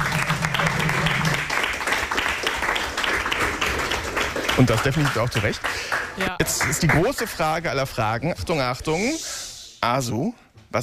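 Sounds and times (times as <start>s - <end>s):
applause: 0.0s - 7.6s
speech: 4.6s - 10.8s.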